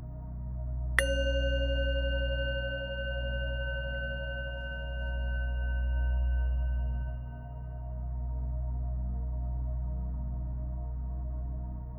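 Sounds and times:
quiet steady low hum: 0.0s - 11.9s
bell ringing: 1.0s - 7.6s.

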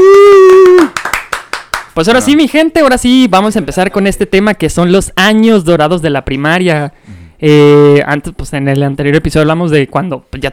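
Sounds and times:
people clapping: 0.0s - 2.4s
speech: 2.0s - 10.5s.

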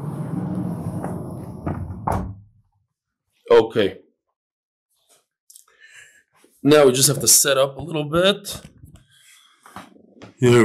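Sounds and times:
low rumbling background: 0.0s - 2.4s
door closing: 0.0s - 2.6s
speech: 1.7s - 2.3s, 3.5s - 4.0s, 6.6s - 8.7s, 9.8s - 10.6s.

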